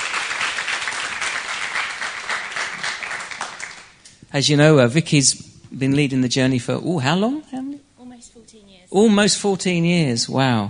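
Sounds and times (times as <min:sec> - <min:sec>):
morning audience applause welcoming a speaker: 0:00.0 - 0:04.0
speech: 0:04.3 - 0:07.6, 0:08.9 - 0:10.6.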